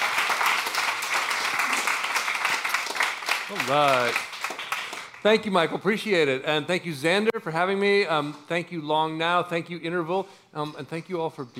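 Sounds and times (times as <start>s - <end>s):
audience applause: 0.0s - 5.3s
speech: 3.5s - 4.3s, 5.2s - 11.5s.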